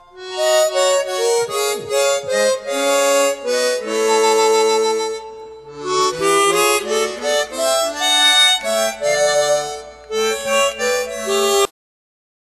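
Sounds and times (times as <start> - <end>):
hymns on chromatic harmonica: 0.0 - 11.7.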